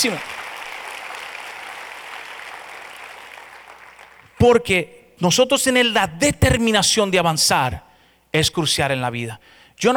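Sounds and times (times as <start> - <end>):
speech: 0.0 - 0.4, 4.4 - 9.9
audience applause: 0.0 - 4.4.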